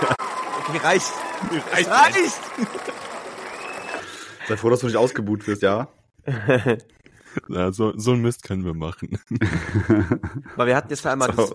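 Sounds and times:
applause sound effect: 0:00.0 - 0:04.4
speech: 0:00.1 - 0:03.1, 0:04.5 - 0:11.5
voice or laughter: 0:06.3 - 0:06.8, 0:09.1 - 0:10.6.

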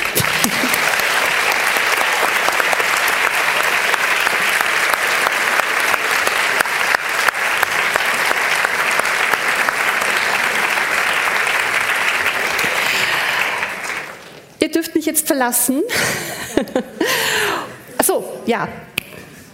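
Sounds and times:
audience applause: 0:00.0 - 0:14.6
speech: 0:15.4 - 0:17.0, 0:18.4 - 0:18.9
laughter: 0:15.9 - 0:17.8.

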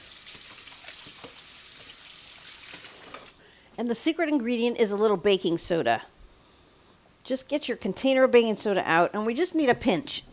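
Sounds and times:
running tap water washing hamburger meat off hands: 0:00.0 - 0:03.4
speech: 0:03.8 - 0:06.2, 0:07.3 - 0:10.3.

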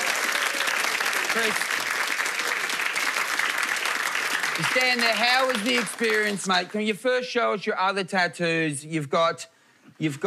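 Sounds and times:
audience applause at a live show: 0:00.0 - 0:06.8
speech: 0:01.3 - 0:01.8, 0:04.6 - 0:10.2.

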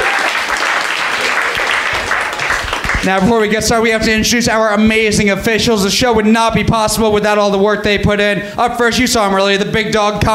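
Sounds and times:
crowd applause: 0:00.0 - 0:03.3
speech: 0:03.0 - 0:10.3.

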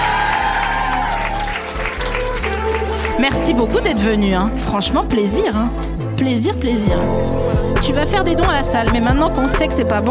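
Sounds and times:
audience applause: 0:00.0 - 0:03.5
speech: 0:03.2 - 0:10.0.

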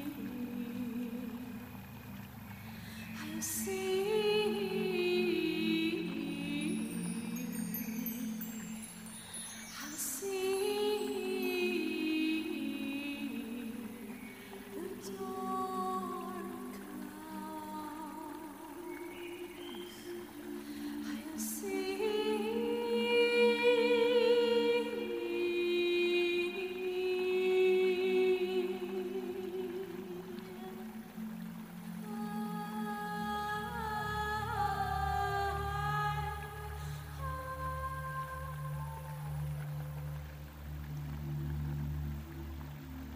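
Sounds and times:
soft humming and singing: 0:00.0 - 0:43.1.

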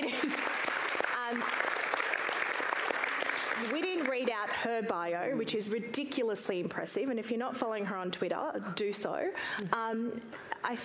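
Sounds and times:
audience applause: 0:00.0 - 0:04.6
speech: 0:04.3 - 0:10.8.

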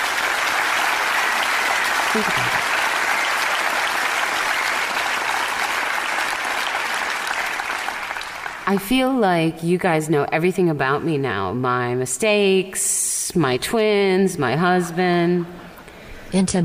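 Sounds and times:
audience applause: 0:00.0 - 0:08.9
speech: 0:02.1 - 0:02.7, 0:08.7 - 0:15.6, 0:16.3 - 0:16.6.

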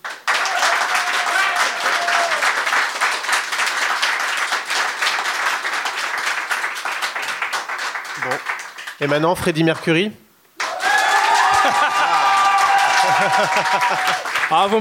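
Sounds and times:
audience applause: 0:00.0 - 0:10.0, 0:10.6 - 0:14.8
speech: 0:09.0 - 0:10.2, 0:13.2 - 0:14.8
laughter: 0:11.3 - 0:14.8.

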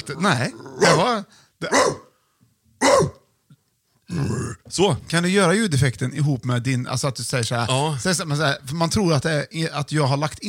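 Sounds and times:
speech: 0:00.1 - 0:02.0, 0:04.2 - 0:10.4
person imitating a chihuahua barking: 0:00.8 - 0:02.1, 0:02.8 - 0:03.2.

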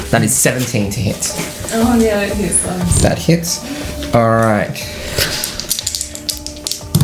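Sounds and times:
speech: 0:00.1 - 0:05.4
dice rolling and clacking on table: 0:05.3 - 0:07.0.

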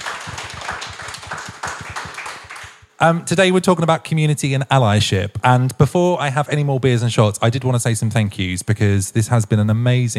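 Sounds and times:
small audience applause: 0:00.0 - 0:02.9
speech: 0:03.0 - 0:10.1.

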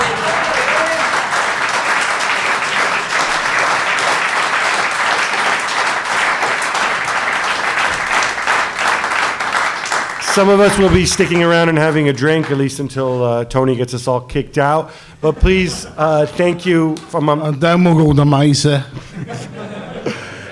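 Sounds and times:
laughter: 0:00.0 - 0:01.1, 0:18.9 - 0:20.4
audience slow hand clap: 0:00.0 - 0:12.7
speech: 0:10.4 - 0:19.4.

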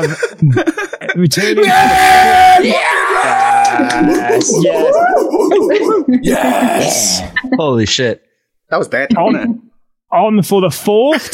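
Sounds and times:
laughter: 0:00.0 - 0:07.8
speech: 0:00.0 - 0:11.3
audience cheering and yelling: 0:01.8 - 0:05.5.

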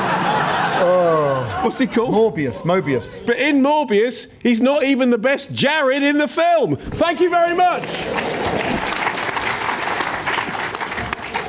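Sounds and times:
laughter: 0:00.0 - 0:03.4, 0:07.8 - 0:09.6
speech: 0:01.6 - 0:08.6
few people clapping unenthusiastically: 0:07.2 - 0:11.4.

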